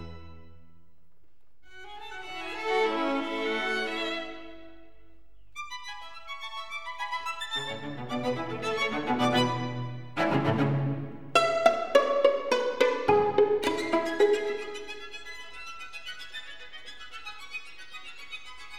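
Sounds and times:
string quartet playing a presto in C-sharp minor: 0.0 - 0.5, 1.7 - 4.8, 6.4 - 15.6.

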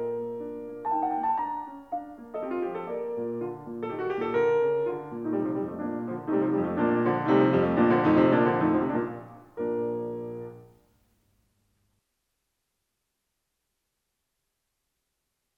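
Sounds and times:
piano sonata in B flat major: 0.0 - 10.9.

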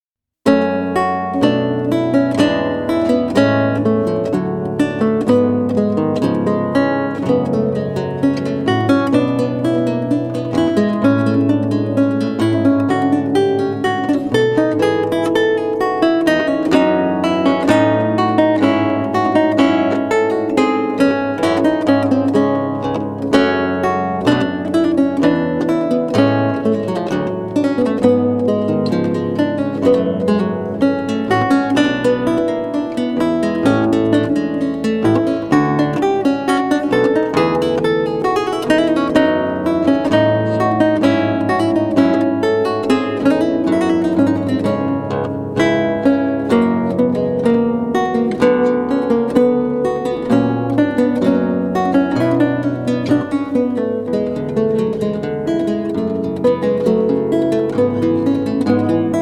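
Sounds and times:
lute piece: 0.4 - 59.1.

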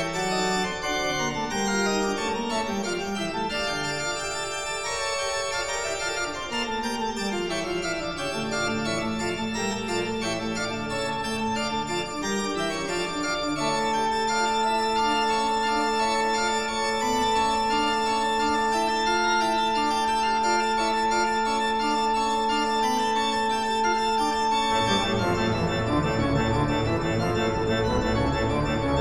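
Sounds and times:
organ piece: 0.0 - 29.0.

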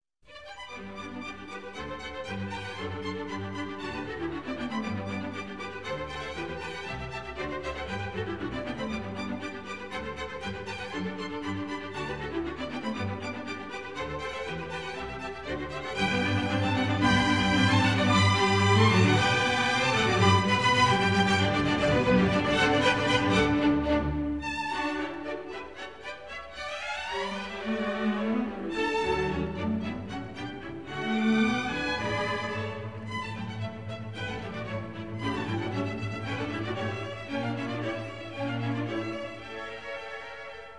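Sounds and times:
string orchestra serenade in G: 0.3 - 40.7.

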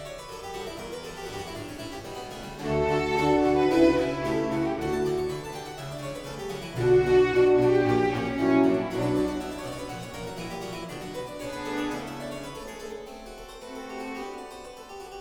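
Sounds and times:
keyboard concerto allegro: 2.6 - 12.4.

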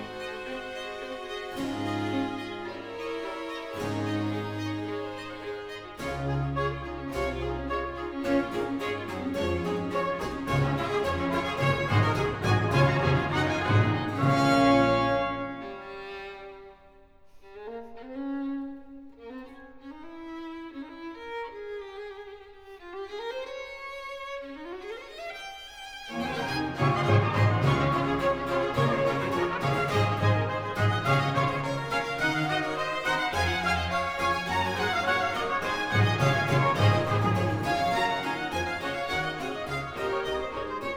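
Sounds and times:
orchestral concert piece in D: 0.0 - 16.8, 26.1 - 40.9.

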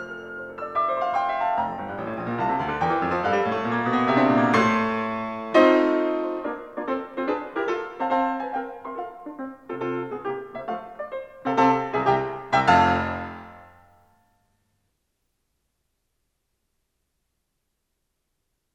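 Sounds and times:
classical piano sonata: 0.0 - 14.0.

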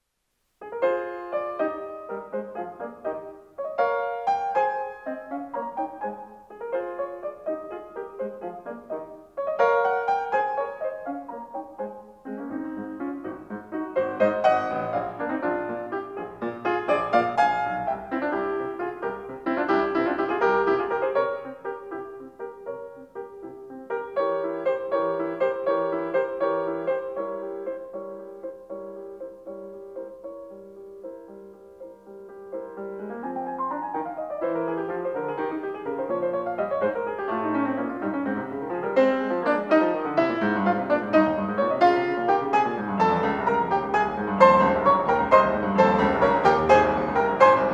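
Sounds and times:
piano sonata in A flat major: 0.0 - 47.7.

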